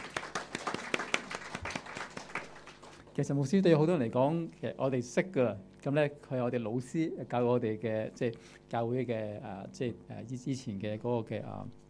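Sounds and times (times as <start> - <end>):
audience applause welcoming a guest speaker: 0.0 - 3.0
speech: 3.2 - 11.8.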